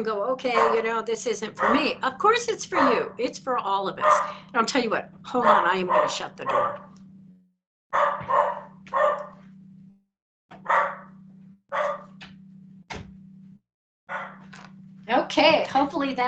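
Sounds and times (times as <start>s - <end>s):
speech: 0.0s - 6.9s, 15.3s - 16.2s
low hum: 0.0s - 16.2s
dog barking at something outside: 0.4s - 3.3s, 3.9s - 4.6s, 5.3s - 7.0s, 7.9s - 9.4s, 10.6s - 12.2s, 14.1s - 14.5s.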